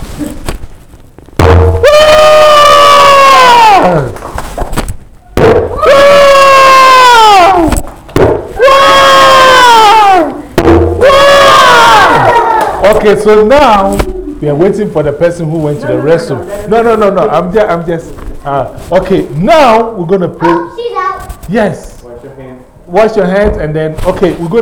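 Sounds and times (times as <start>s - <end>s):
audience shouting: 1.8s - 4.1s, 5.7s - 7.8s, 8.6s - 13.0s
speech: 13.1s - 20.6s, 21.5s - 21.9s, 22.9s - 24.5s.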